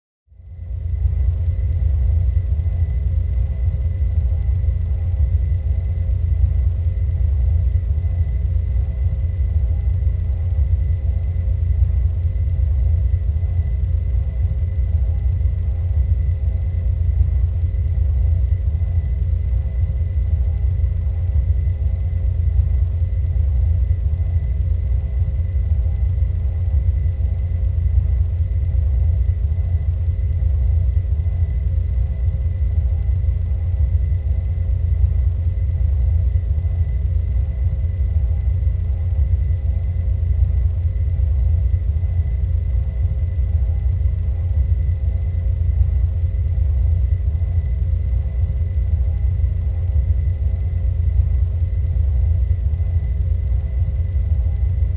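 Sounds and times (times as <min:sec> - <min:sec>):
spaceship interior ambience: 0:00.3 - 0:54.9.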